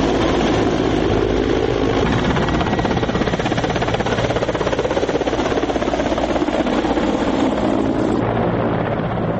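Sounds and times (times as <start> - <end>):
armed Mi-17 military helicopter rotor roar on a test flight near Kabul: 0.0 - 9.3.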